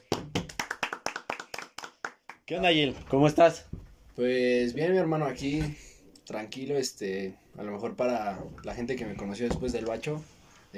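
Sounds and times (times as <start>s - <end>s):
applause in the studio: 0.0s - 2.5s
speech: 2.5s - 10.7s.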